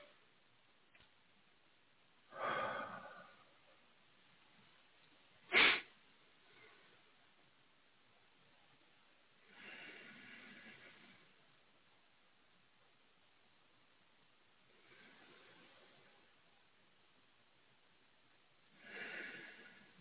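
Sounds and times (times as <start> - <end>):
slow breathing during a church service: 2.3 - 3.8, 5.7 - 7.1, 9.4 - 11.4, 14.6 - 16.2, 18.7 - 19.9.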